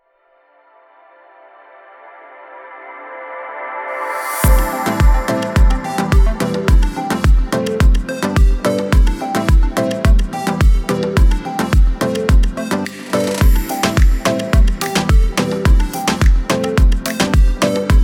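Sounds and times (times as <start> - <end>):
tropical reggaeton music: 3.9 - 18.0.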